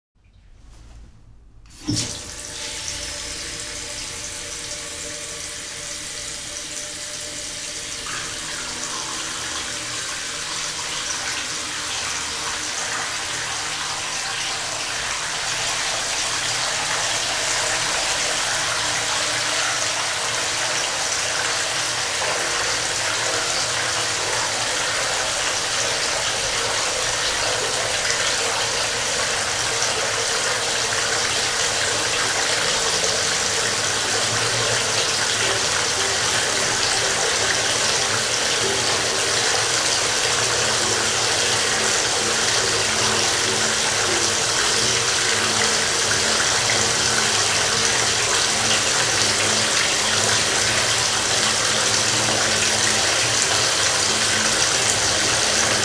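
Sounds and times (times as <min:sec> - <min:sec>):
water filling a bathtub: 0:01.7 - 0:55.8.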